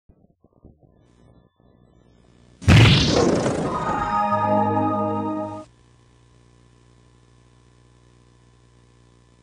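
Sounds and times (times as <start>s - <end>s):
PC-FX console startup sound: 3.0s - 5.7s.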